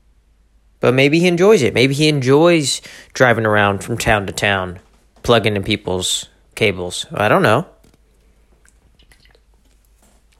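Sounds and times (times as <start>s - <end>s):
speech: 0.8s - 7.8s
person chugging a cup of coffee: 8.2s - 10.3s.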